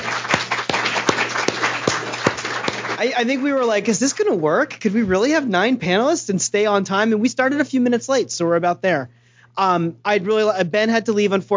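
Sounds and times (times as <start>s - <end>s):
audience applause: 0.0s - 3.4s
speech: 3.0s - 11.5s.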